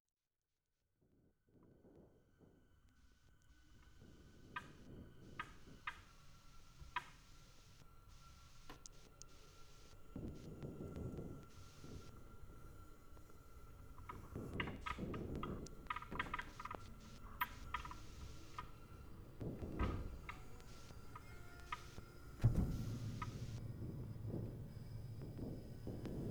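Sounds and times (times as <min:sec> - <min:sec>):
piano: 0:03.5 - 0:26.2
bells: 0:07.3 - 0:26.2.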